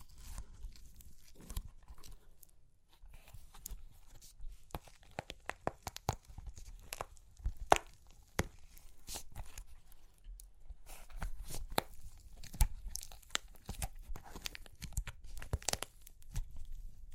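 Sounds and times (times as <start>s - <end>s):
super crunchy clay cracking: 0.0s - 17.1s.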